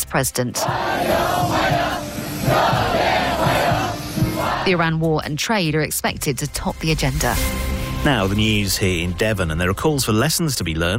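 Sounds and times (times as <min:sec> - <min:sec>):
speech: 0:00.1 - 0:03.1, 0:04.7 - 0:10.9
crowd chanting: 0:00.5 - 0:04.8.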